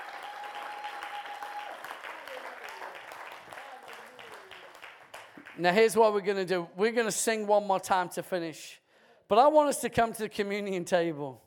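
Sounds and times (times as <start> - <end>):
audience clapping: 0.0 - 6.0
speech: 5.6 - 11.4.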